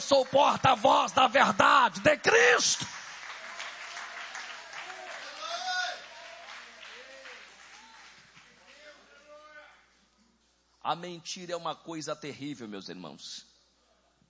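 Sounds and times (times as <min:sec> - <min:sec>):
speech: 0:00.0 - 0:03.0, 0:10.8 - 0:13.5
audience applauding: 0:00.0 - 0:09.0.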